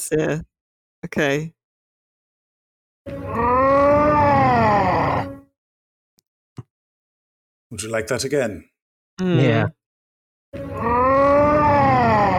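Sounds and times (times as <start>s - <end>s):
speech: 0.0s - 1.6s, 3.1s - 3.6s, 7.7s - 9.8s
video game death scream: 3.2s - 5.4s, 10.7s - 12.3s.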